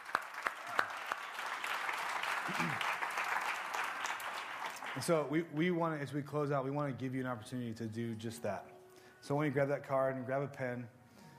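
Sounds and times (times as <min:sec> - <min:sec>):
audience applause: 0:00.0 - 0:05.2
speech: 0:02.5 - 0:02.9, 0:05.0 - 0:11.0.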